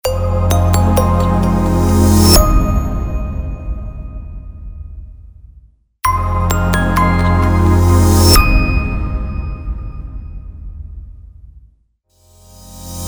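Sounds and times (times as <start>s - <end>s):
corporate logo jingle: 0.0s - 3.7s, 6.1s - 9.8s.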